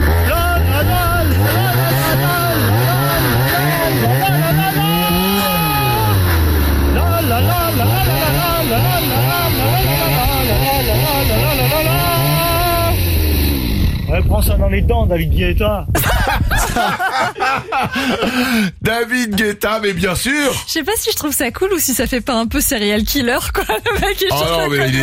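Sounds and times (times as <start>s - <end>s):
laughter: 0.0s - 13.0s, 15.9s - 19.6s, 23.2s - 25.0s
chainsaw playing a song melody: 0.0s - 14.1s
speech: 14.4s - 25.0s.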